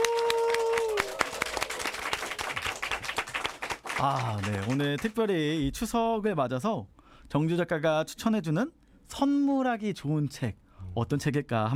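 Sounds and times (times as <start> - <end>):
applause: 0.0 - 5.3
speech: 4.0 - 11.7.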